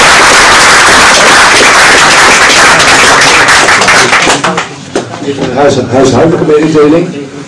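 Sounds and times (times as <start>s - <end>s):
audience applause: 0.0s - 4.8s
speech: 5.3s - 7.2s.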